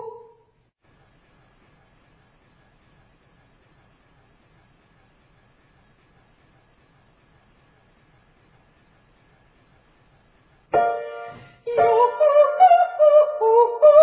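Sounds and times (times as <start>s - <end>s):
ascending very high triads: 10.7s - 13.8s.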